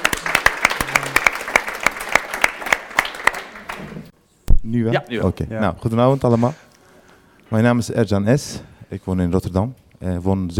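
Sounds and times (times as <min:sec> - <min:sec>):
audience applause: 0:00.0 - 0:04.1
speech: 0:04.7 - 0:06.7, 0:07.5 - 0:10.5.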